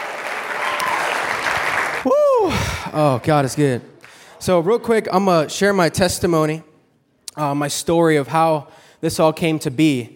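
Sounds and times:
audience applause: 0:00.0 - 0:03.4
speech: 0:02.0 - 0:06.7, 0:07.4 - 0:10.1.

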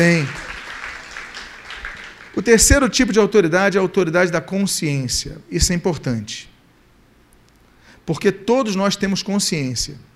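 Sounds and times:
speech: 0:00.0 - 0:00.4, 0:02.4 - 0:06.5, 0:08.0 - 0:10.1
audience applause: 0:00.0 - 0:02.7.

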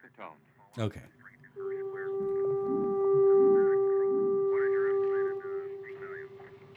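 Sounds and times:
speech: 0:00.0 - 0:01.8
five-note alien tones: 0:01.6 - 0:06.7.

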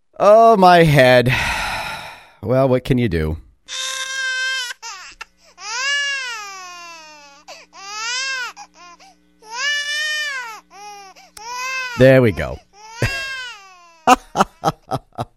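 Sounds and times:
speech: 0:00.2 - 0:01.6, 0:02.4 - 0:03.9, 0:12.0 - 0:13.1, 0:14.1 - 0:15.3
baby crying sound effect: 0:03.7 - 0:14.8
laughter: 0:14.1 - 0:15.3.

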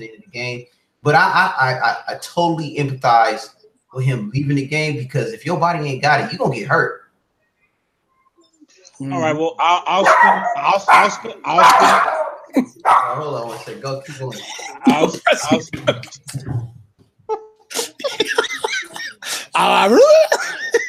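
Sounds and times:
speech: 0:00.0 - 0:07.0, 0:09.0 - 0:17.8, 0:19.6 - 0:20.4
dog barking: 0:10.0 - 0:13.3
laughter: 0:13.2 - 0:16.5, 0:17.7 - 0:20.8.

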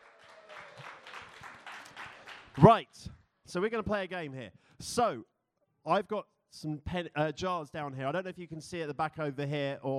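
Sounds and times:
audience applause: 0:00.0 - 0:02.7
speech: 0:02.6 - 0:09.9.

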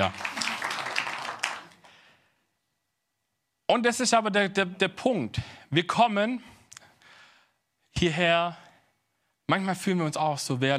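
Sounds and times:
speech: 0:00.0 - 0:00.3, 0:03.7 - 0:06.6, 0:08.0 - 0:08.6, 0:09.5 - 0:10.7
audience applause in a church: 0:00.0 - 0:01.9.

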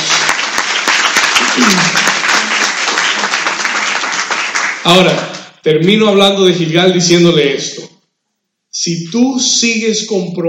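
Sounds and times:
audience applause: 0:00.0 - 0:05.4
speech: 0:01.6 - 0:02.1, 0:04.8 - 0:07.9, 0:08.8 - 0:10.4.

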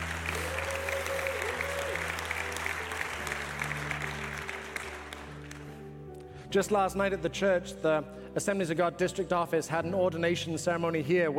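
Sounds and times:
audience clapping: 0:00.0 - 0:06.0
speech: 0:06.5 - 0:11.3.

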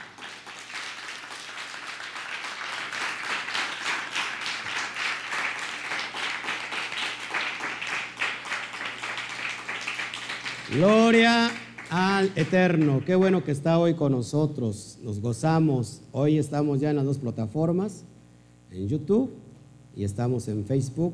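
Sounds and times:
audience applause: 0:00.0 - 0:13.4
speech: 0:10.7 - 0:18.1, 0:18.7 - 0:19.4, 0:20.0 - 0:21.1.

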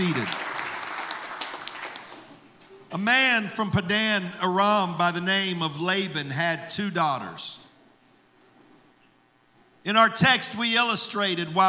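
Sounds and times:
audience hand clapping: 0:00.0 - 0:02.4
speech: 0:03.0 - 0:07.6, 0:09.8 - 0:11.6.

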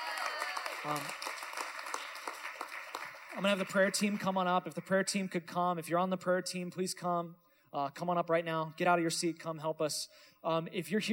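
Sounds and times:
audience clapping: 0:00.0 - 0:05.1
speech: 0:00.8 - 0:01.3, 0:03.4 - 0:11.1.

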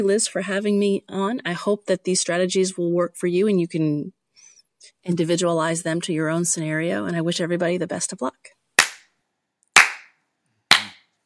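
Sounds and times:
speech: 0:00.0 - 0:04.2, 0:05.0 - 0:08.6
slow handclaps: 0:08.8 - 0:09.1, 0:09.8 - 0:11.0.

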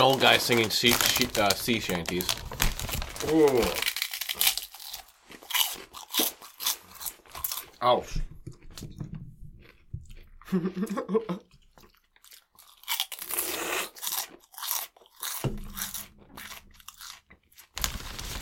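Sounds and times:
speech: 0:00.0 - 0:02.4, 0:03.2 - 0:03.9, 0:07.8 - 0:08.9, 0:10.5 - 0:11.5
chewing food during lunch: 0:03.3 - 0:07.8, 0:08.4 - 0:17.8.

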